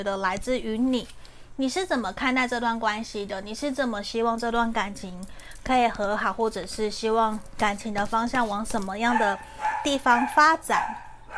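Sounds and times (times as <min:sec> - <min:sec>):
speech: 0:00.0 - 0:11.0
dog barking: 0:09.1 - 0:11.3.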